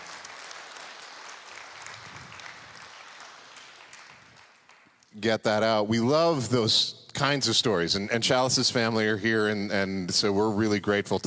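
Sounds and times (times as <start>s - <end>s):
audience clapping: 0.0s - 5.2s
speech: 5.2s - 11.2s.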